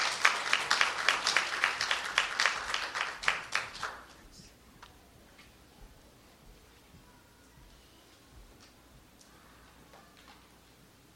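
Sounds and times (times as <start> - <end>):
scattered applause at a church service: 0.0 - 4.2.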